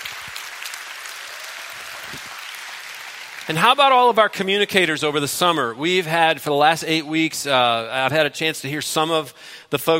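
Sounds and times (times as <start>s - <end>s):
church congregation clapping: 0.0s - 4.8s
speech: 3.5s - 9.9s.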